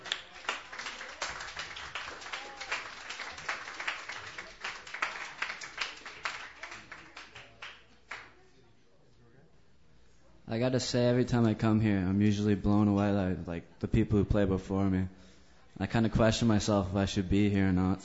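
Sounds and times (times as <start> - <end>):
audience applause at an open mic for a singer-songwriter: 0.0 - 8.3
speech: 10.5 - 15.2, 15.8 - 18.0.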